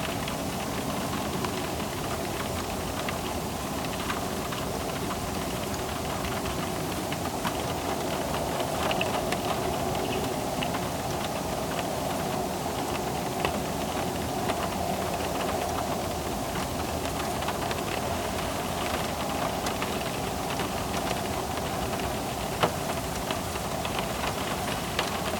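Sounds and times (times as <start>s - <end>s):
light rain heard inside a car: 0.0s - 25.3s.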